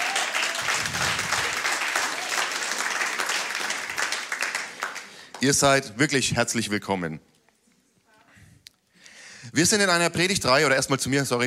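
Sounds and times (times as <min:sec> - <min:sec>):
applause: 0:00.0 - 0:05.6
speech: 0:05.4 - 0:07.3, 0:09.6 - 0:11.4.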